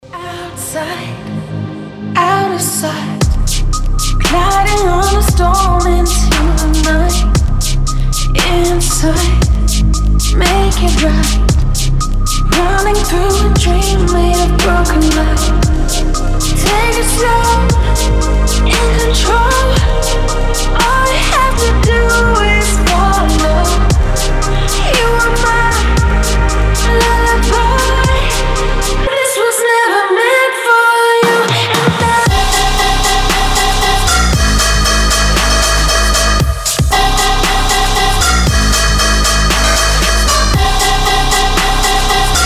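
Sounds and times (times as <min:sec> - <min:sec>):
dubstep lullaby: 0:00.0 - 0:42.4.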